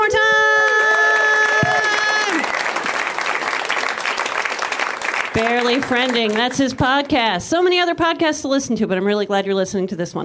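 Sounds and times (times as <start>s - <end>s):
audience applause: 0.5s - 7.2s
speech: 5.4s - 10.2s.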